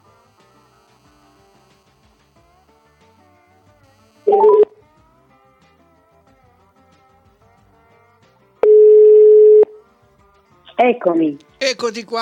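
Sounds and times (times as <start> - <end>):
long steady telephone ringing tone: 4.2 - 4.7, 8.6 - 9.8
telephone key beeps dialing a call: 4.3 - 4.7, 8.6 - 9.7
speech: 10.8 - 12.2.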